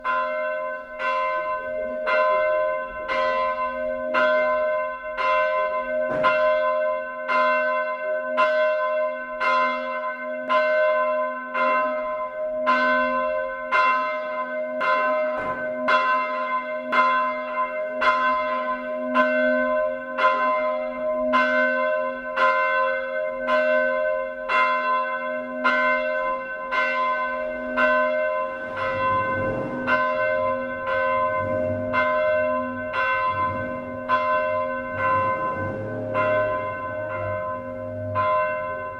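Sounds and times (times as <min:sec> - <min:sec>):
church bells: 0:00.0 - 0:38.9.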